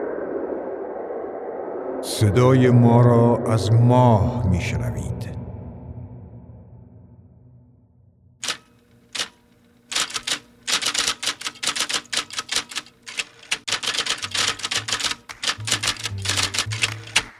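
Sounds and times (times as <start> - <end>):
speech: 2.3 - 5.4
typewriter typing: 8.4 - 17.3.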